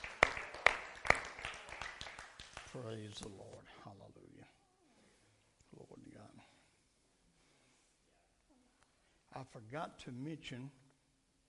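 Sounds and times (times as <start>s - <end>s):
audience hand clapping: 0.0s - 3.4s
speech: 2.8s - 4.0s, 9.4s - 10.8s.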